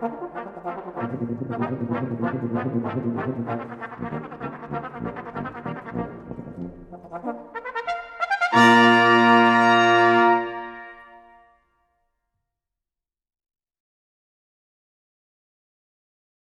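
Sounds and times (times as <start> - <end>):
brass ensemble playing a tarantella: 0.0 - 11.4.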